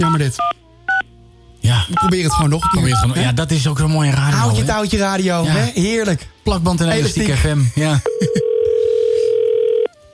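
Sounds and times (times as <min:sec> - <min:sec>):
speech: 0:00.0 - 0:00.6, 0:01.9 - 0:08.5
laughter: 0:07.0 - 0:08.6
telephone line ringback tone: 0:08.1 - 0:09.9.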